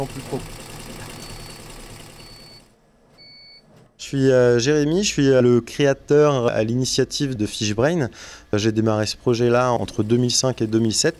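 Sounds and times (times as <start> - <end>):
speech: 0.0 - 0.6, 4.1 - 11.1
four-head embroidery machine running with whirring rattle: 0.0 - 2.7, 8.6 - 11.1.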